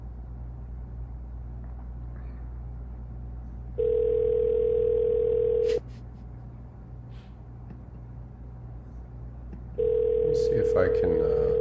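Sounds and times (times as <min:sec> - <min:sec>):
low hum: 0:00.0 - 0:11.5
ringback tone on an outgoing phone call: 0:03.8 - 0:05.8, 0:09.8 - 0:11.5.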